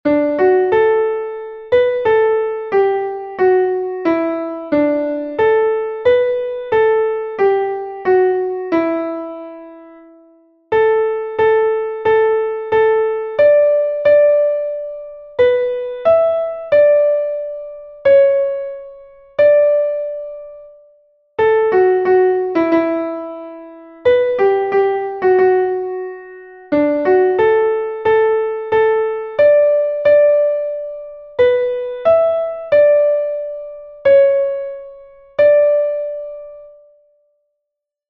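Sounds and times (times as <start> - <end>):
piano: 0.0 - 37.5.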